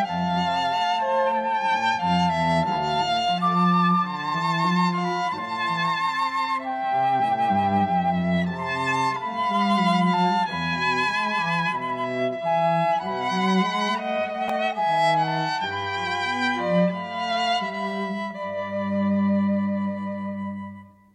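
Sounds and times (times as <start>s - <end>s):
flute trio playing: 0.0s - 21.1s.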